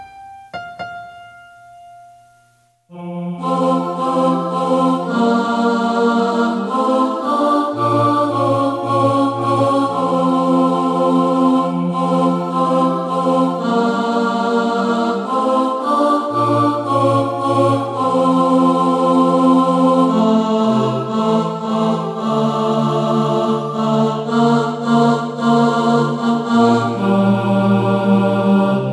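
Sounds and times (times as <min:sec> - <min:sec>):
tenor singing: 0:02.9 - 0:28.9.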